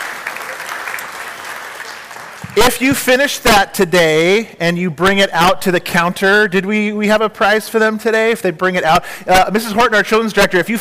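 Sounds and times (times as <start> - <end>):
audience applause: 0.0 - 2.8
speech: 2.6 - 10.7.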